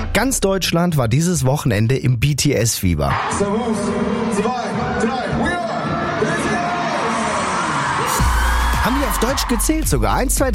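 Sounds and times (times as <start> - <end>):
speech: 0.2 - 5.6, 8.9 - 10.5
thousands of concert fans cheering: 3.1 - 10.3.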